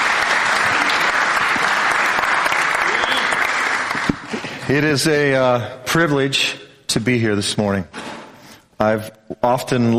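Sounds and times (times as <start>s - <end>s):
audience applause welcoming a speaker to a morning gathering: 0.0s - 4.7s
speech: 4.7s - 8.0s, 8.8s - 9.9s.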